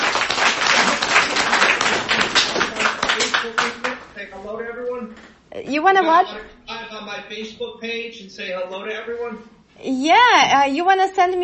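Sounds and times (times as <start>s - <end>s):
audience applauding at the close of a Q and A session: 0.0s - 4.1s
speech: 5.6s - 11.4s.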